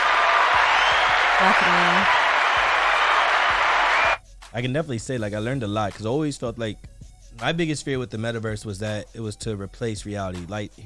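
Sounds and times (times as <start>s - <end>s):
round of applause: 0.0s - 4.2s
speech: 1.4s - 2.2s, 4.5s - 10.8s.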